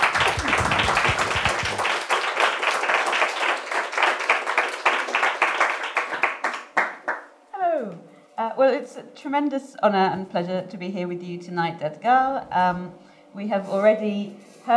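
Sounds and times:
audience applause welcoming guest speakers: 0.0 - 7.2
speech: 8.7 - 14.7.

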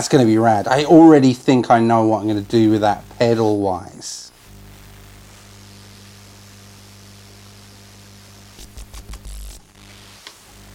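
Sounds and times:
speech: 0.0 - 4.2
jeans zipper causing radio-like static buzz: 0.0 - 10.7.

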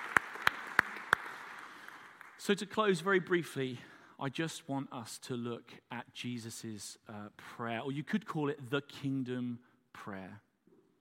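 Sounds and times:
soft handclaps: 0.0 - 2.4
speech: 2.4 - 10.5.

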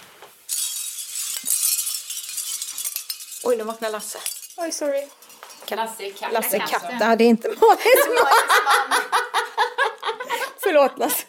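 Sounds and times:
hanging seashell pieces of a lamp clinking and rattling: 0.5 - 7.1
speech: 3.4 - 9.4, 10.7 - 11.2
laughter: 7.5 - 11.2.

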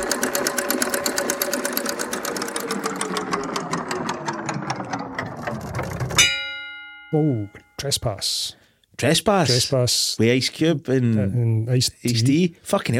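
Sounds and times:
spinning prize wheel clicking: 0.0 - 6.3
speech: 7.1 - 12.9.

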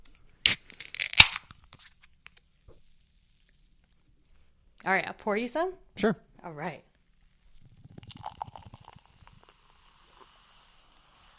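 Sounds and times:
opening a can of cherry soda: 0.4 - 2.5, 7.9 - 10.7
speech: 4.8 - 6.9.

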